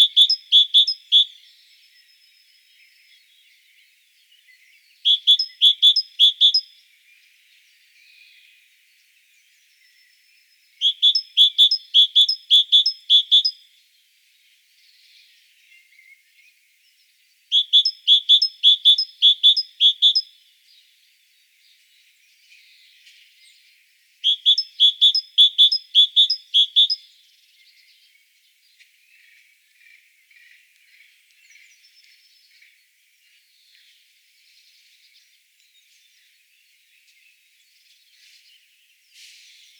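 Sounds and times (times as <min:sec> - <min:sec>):
great tit calling: 0:00.0 - 0:03.0, 0:05.0 - 0:06.7, 0:10.5 - 0:13.6, 0:17.5 - 0:20.3, 0:24.2 - 0:27.9.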